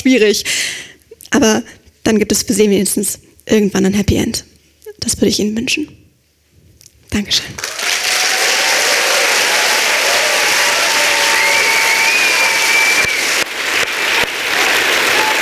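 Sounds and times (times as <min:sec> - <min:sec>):
speech: 0:00.0 - 0:06.0, 0:07.1 - 0:07.8
audience applause: 0:07.6 - 0:15.4.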